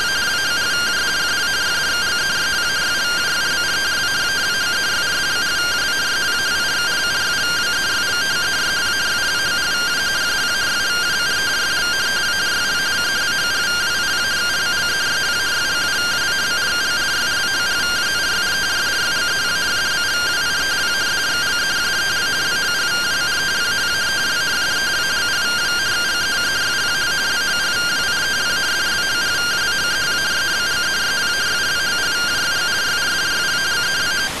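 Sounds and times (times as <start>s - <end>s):
RTTY radio teletype signal received: 0.0s - 34.3s.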